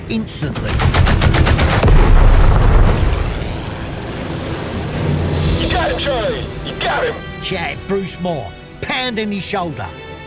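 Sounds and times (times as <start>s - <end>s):
speech: 0.1s - 1.0s, 6.0s - 10.0s
twin .50 caliber machine guns firing: 0.4s - 6.1s
deep rumbling roar: 1.7s - 6.8s.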